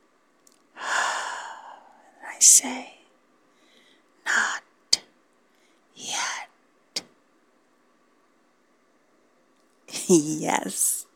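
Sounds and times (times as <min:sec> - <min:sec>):
person exhaling onto someone: 0:00.8 - 0:02.0
speech: 0:02.4 - 0:03.0, 0:10.1 - 0:11.0.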